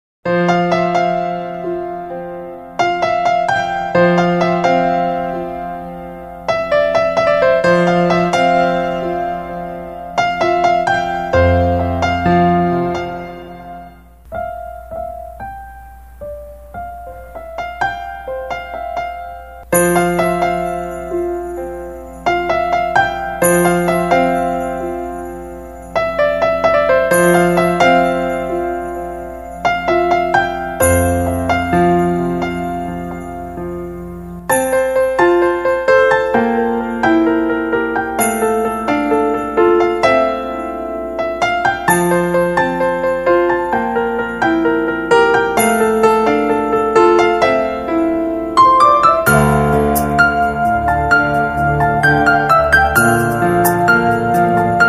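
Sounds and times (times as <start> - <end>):
piano playing at church: 0.2 - 54.8.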